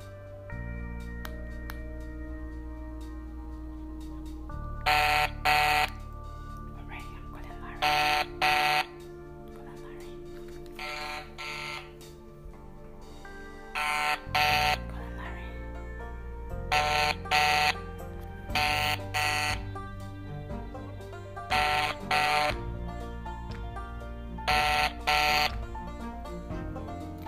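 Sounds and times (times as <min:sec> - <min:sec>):
steady humming tonal background: 0:00.0 - 0:27.2
phone call ringing tone: 0:04.8 - 0:06.0, 0:07.8 - 0:09.0, 0:10.8 - 0:12.0, 0:13.7 - 0:14.9, 0:16.7 - 0:17.8, 0:18.5 - 0:19.7, 0:21.5 - 0:22.6, 0:24.5 - 0:25.6.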